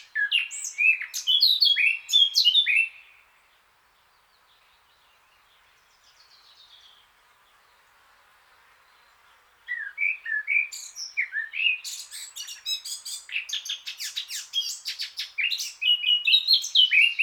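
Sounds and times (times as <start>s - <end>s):
Eurasian blackcap Sylvia atricapilla singing warbled phrases: 0.0s - 3.1s, 9.7s - 17.2s.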